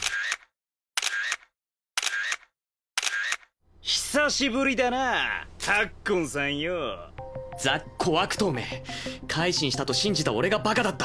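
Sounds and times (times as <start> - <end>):
security camera shutter bursts: 0.0 - 3.5
speech: 3.9 - 11.0.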